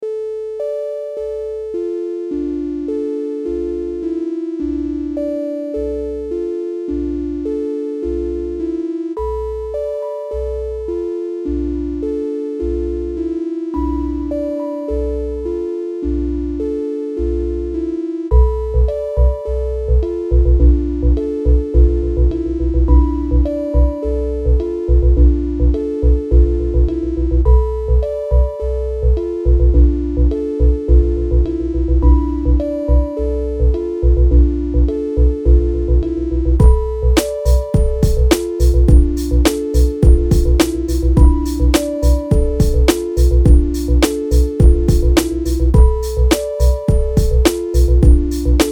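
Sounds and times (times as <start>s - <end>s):
sine wave tone: 0.0s - 48.6s.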